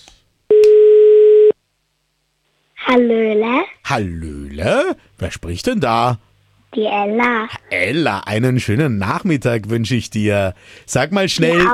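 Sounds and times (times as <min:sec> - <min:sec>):
telephone tone: 0:00.5 - 0:01.6
speech: 0:02.9 - 0:11.7.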